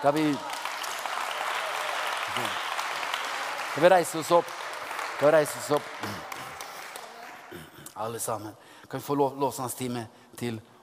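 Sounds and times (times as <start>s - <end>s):
speech: 0.0s - 0.5s, 2.4s - 2.6s, 3.8s - 4.6s, 5.2s - 6.3s, 7.5s - 10.7s
audience applause: 0.0s - 7.7s.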